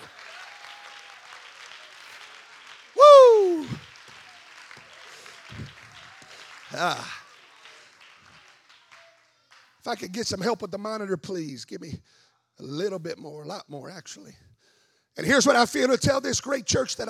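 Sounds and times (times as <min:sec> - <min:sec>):
audience clapping hands: 0:00.0 - 0:10.8
speech: 0:06.7 - 0:07.2, 0:09.8 - 0:14.5, 0:15.2 - 0:17.0.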